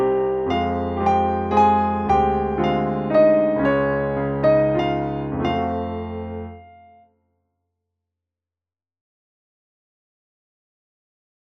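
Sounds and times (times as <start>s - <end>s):
instrumental music: 0.0s - 7.1s.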